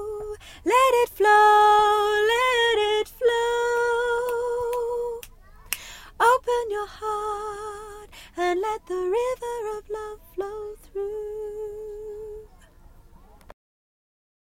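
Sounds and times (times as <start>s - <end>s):
soprano choir singing: 0.0s - 5.2s, 6.2s - 12.4s.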